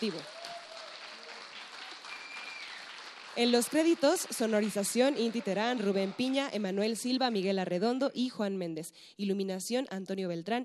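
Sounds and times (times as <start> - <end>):
speech: 0.0 - 0.4, 3.4 - 10.6
audience applause: 0.0 - 6.7.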